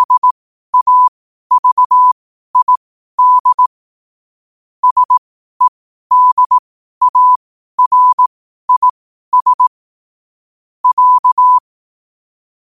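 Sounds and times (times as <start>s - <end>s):
morse code at 5 wpm: 0.0s - 3.7s, 4.8s - 9.7s, 10.8s - 11.6s.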